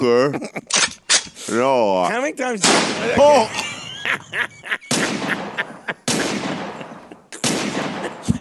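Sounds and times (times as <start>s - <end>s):
laughter: 0.0s - 0.8s, 2.9s - 8.3s
speech: 0.0s - 0.9s, 1.5s - 5.6s
gunshots: 2.6s - 3.5s, 4.9s - 8.3s.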